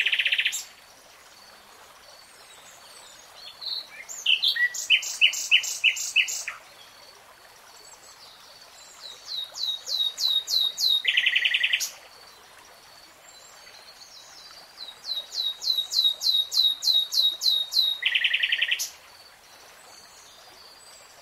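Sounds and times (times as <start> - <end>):
nightingale singing: 3.4 - 6.6, 9.3 - 11.9, 14.8 - 19.0.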